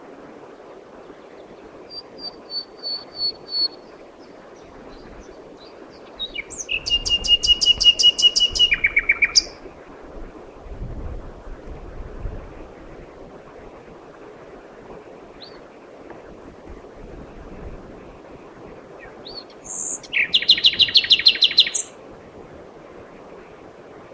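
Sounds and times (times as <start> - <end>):
common nightingale song: 4.9 - 9.6, 19.0 - 22.0.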